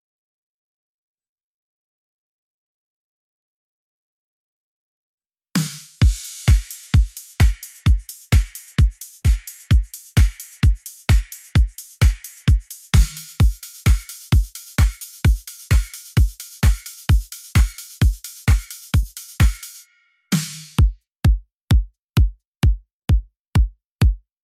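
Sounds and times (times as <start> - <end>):
drums: 5.6 - 22.8.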